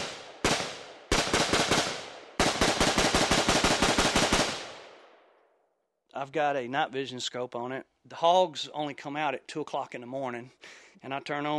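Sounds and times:
AR-15 semi-automatic rifle firing: 0.0 - 5.2
speech: 6.2 - 11.5.

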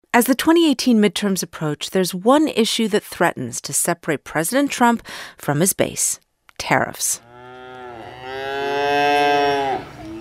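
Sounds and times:
speech: 0.1 - 7.3
cow mooing: 7.2 - 10.1.

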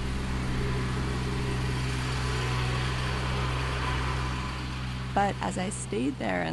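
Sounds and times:
lawnmower running in the distance: 0.0 - 6.5
speech: 5.2 - 6.5.

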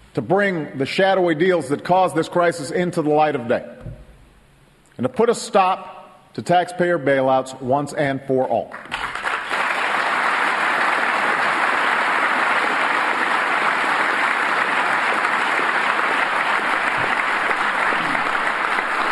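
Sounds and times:
speech: 0.2 - 3.9, 5.0 - 9.0
long applause from large audience: 8.8 - 19.0.

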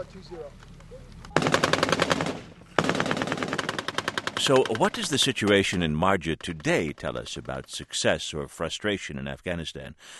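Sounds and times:
speech: 0.0 - 2.6, 4.4 - 10.1
AK-47 rifle automatic fire in a firefight with a patrol: 1.4 - 4.8.

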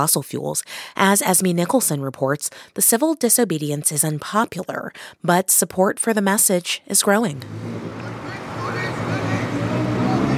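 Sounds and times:
speech: 0.0 - 8.1
rush hour traffic at highway exit: 7.2 - 10.3.

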